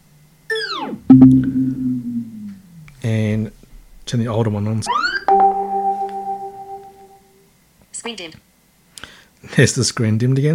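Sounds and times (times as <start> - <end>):
Beats Pill Plus Bluetooth speaker power-off tone: 0.9 - 7.2
speech: 4.1 - 5.1, 8.1 - 8.4, 9.6 - 10.5.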